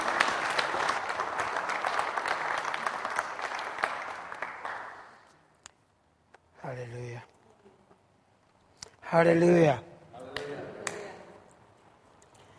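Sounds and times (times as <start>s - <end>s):
church audience applause welcoming a pastor: 0.0s - 5.3s
speech: 9.1s - 9.9s.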